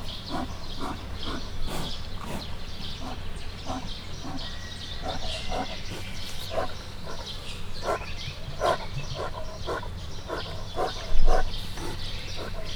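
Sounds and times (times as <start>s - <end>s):
brown bear breathing at Miskolc zoo: 0.0s - 12.7s.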